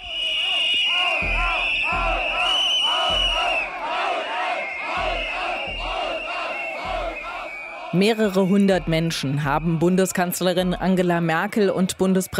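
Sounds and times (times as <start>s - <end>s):
sustained shrill whistle: 0.0s - 10.0s
crowd booing and jeering: 0.0s - 12.3s
rhythmic low thumps or chanting pulses: 0.0s - 12.3s
speech: 7.9s - 12.3s.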